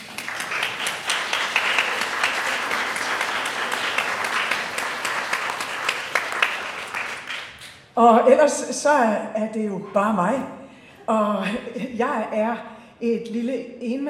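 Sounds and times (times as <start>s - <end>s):
audience applause: 0.0s - 7.8s
speech: 8.0s - 14.0s.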